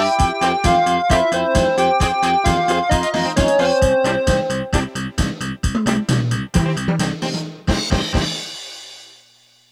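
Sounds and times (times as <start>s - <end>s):
Casio CT-370 keyboard rock rhythm: 0.0s - 8.8s.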